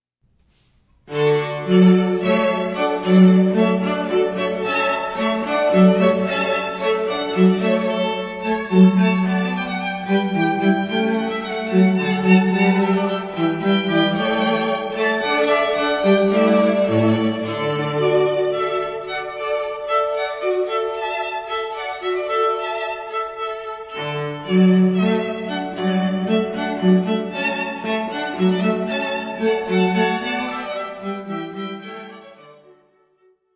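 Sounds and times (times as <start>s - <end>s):
music: 0.3s - 33.5s.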